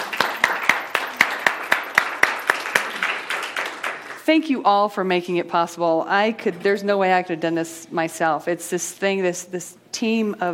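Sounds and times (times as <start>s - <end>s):
audience applause: 0.0s - 4.2s
speech: 4.3s - 10.5s.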